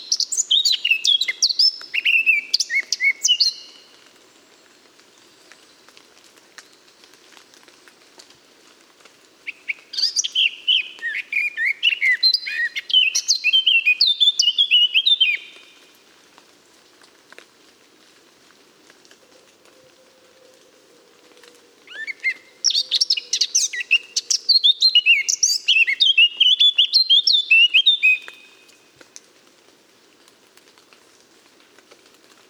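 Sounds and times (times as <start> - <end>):
Eurasian blackcap singing: 0.0 - 3.8, 9.7 - 15.6, 21.9 - 28.4.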